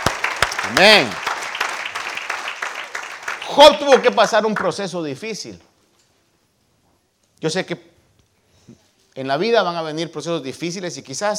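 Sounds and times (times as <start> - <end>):
audience applause: 0.0 - 4.7
speech: 0.6 - 1.2, 3.5 - 5.7, 7.4 - 7.9, 8.7 - 11.3.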